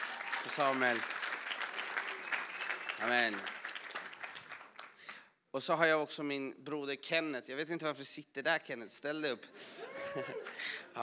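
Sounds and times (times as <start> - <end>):
audience applause: 0.0 - 5.1, 9.7 - 11.0
speech: 0.4 - 1.2, 3.0 - 3.6, 5.5 - 11.0
laughter: 9.5 - 11.0.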